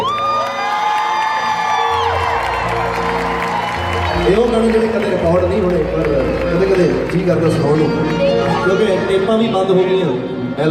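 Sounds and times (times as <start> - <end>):
audience cheering and whooping after a song: 0.0 - 7.9
speech: 4.3 - 10.7.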